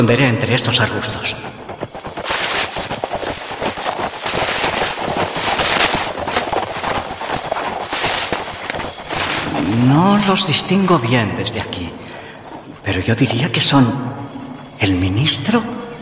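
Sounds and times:
speech: 0.0 - 1.5, 9.7 - 12.0, 12.9 - 14.1, 14.8 - 15.8
crickets chirping: 0.0 - 15.9
horse hooves pounding: 0.7 - 11.3.

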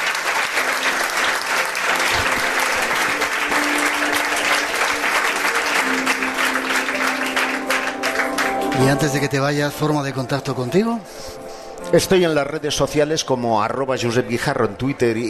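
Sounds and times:
audience applause: 0.0 - 9.6
speech: 8.9 - 15.2.

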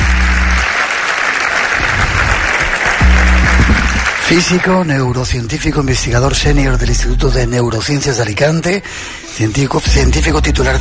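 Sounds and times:
audience applause for a guest: 0.0 - 5.0
speech: 4.3 - 10.7.

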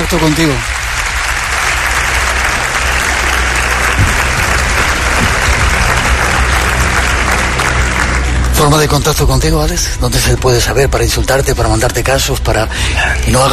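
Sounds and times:
audience applause: 0.0 - 9.2
speech: 0.1 - 0.8, 8.6 - 13.5.

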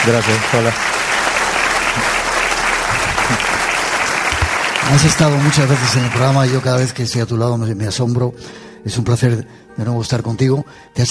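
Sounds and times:
speech: 0.0 - 1.1, 3.3 - 3.5, 4.8 - 11.1
audience applause: 0.0 - 7.2.

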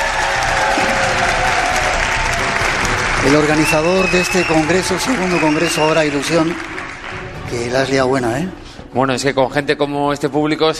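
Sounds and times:
audience applause: 0.0 - 7.9
speech: 3.2 - 6.7, 7.5 - 10.7.

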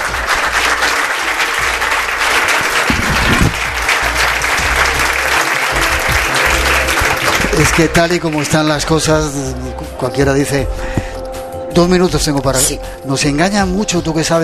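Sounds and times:
audience applause: 0.0 - 9.0
speech: 7.6 - 11.1, 11.8 - 14.4.

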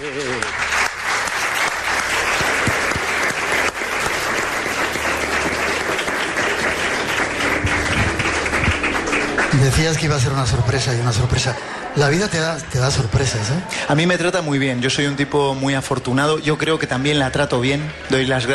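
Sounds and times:
audience applause: 0.0 - 13.5
speech: 9.7 - 18.5.

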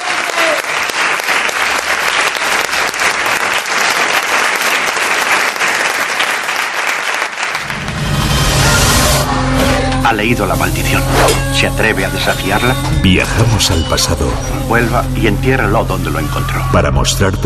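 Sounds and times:
audience applause: 0.0 - 9.0
speech: 10.1 - 17.4.

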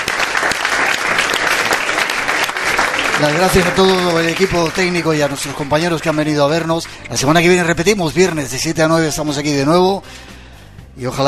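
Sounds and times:
audience applause: 0.0 - 6.9
speech: 3.2 - 10.3, 11.0 - 11.2.

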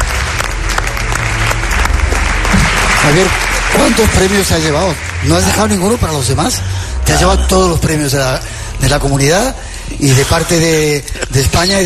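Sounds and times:
audience applause honouring a celebrated figure at a Spanish event: 0.0 - 6.7
speech: 3.1 - 11.8.

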